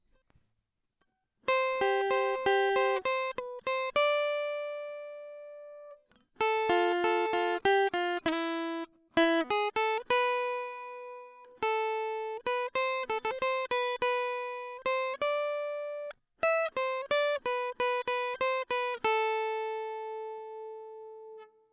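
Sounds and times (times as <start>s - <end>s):
guitar: 1.4s - 21.7s.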